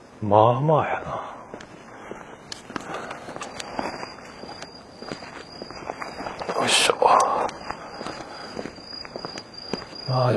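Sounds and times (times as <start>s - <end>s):
low hiss: 0.0s - 8.4s
speech: 0.2s - 1.4s, 10.1s - 10.3s
footsteps of someone walking outdoors: 1.4s - 10.3s.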